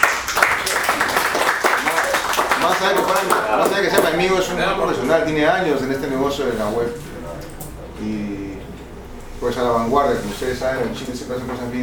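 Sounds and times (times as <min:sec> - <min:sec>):
audience applause at a conference: 0:00.0 - 0:04.1
speech: 0:02.7 - 0:07.1, 0:08.0 - 0:08.3, 0:09.4 - 0:11.8.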